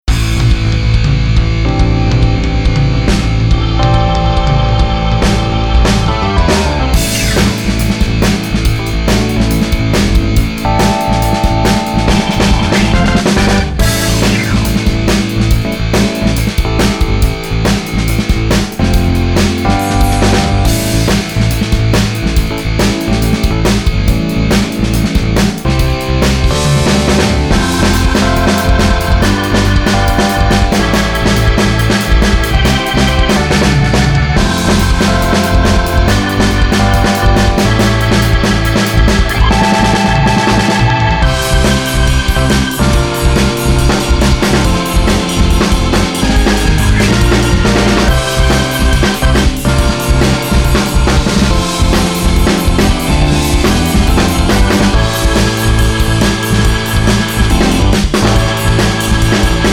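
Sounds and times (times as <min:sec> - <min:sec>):
rock music: 0:00.0 - 0:59.7.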